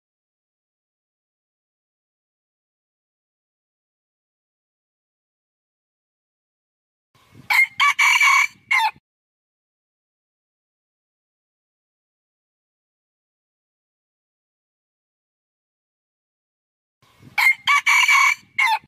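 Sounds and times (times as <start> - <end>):
red junglefowl crowing: 7.5 - 9.0, 17.4 - 18.8.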